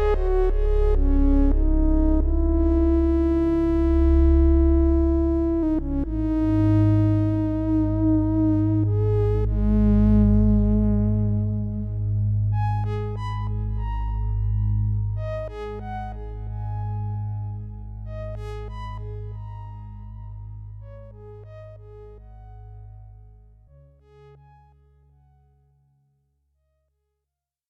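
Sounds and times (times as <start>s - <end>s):
soft synthesizer solo: 0.0s - 22.6s.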